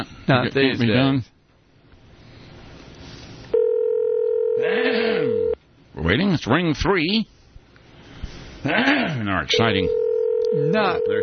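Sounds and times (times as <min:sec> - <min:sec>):
speech: 0:00.0 - 0:01.3, 0:06.0 - 0:07.3, 0:08.6 - 0:11.2
telephone keypad dialing tones: 0:03.6 - 0:04.6, 0:09.9 - 0:11.2.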